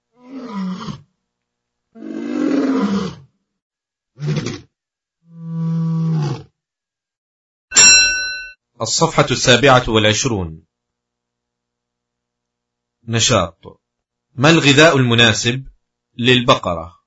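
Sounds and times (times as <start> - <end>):
tiger roaring: 0.1 - 1.1, 2.0 - 3.3, 4.2 - 4.7, 5.3 - 6.5
speech: 8.8 - 10.7, 13.1 - 13.8, 14.4 - 17.0.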